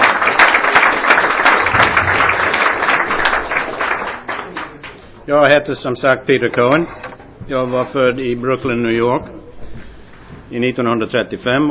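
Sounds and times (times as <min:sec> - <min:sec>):
applause from audience in dining hall: 0:00.0 - 0:05.1
speech: 0:05.3 - 0:09.4, 0:10.5 - 0:11.6.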